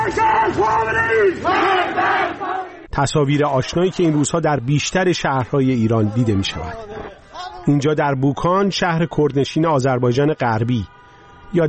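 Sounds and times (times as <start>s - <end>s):
protest crowd chanting slogans: 0.0s - 2.9s
speech: 0.1s - 11.6s.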